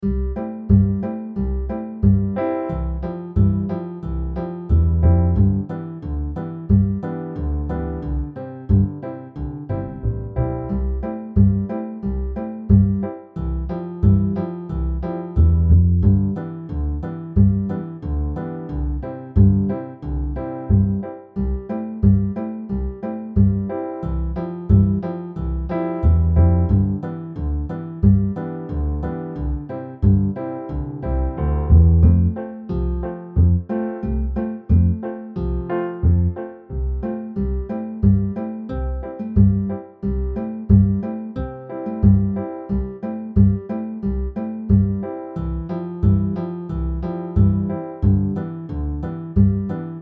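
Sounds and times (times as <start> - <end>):
instrumental backing track: 0.0 - 50.0.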